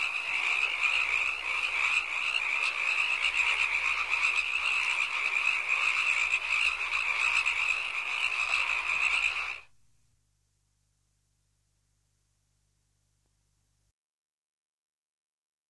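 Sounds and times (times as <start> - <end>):
frog giving a shrill pulsing trill: 0.0 - 9.7.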